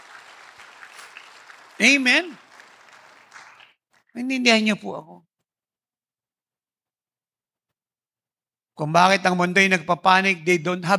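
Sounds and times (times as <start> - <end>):
audience applauding: 0.0 - 3.8
speech: 1.8 - 2.4, 4.2 - 5.3, 8.8 - 10.9.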